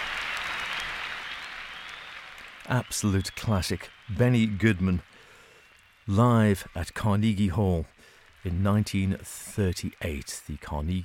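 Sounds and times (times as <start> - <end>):
large crowd applause at a 1938 live jazz concert at Carnegie Hall: 0.0 - 11.0
speech: 2.7 - 5.2, 6.1 - 11.0.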